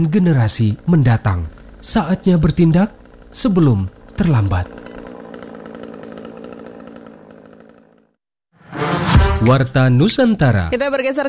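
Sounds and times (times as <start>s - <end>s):
speech: 0.0s - 4.8s, 9.4s - 11.2s
chainsaw felling trees at full throttle: 0.0s - 8.2s.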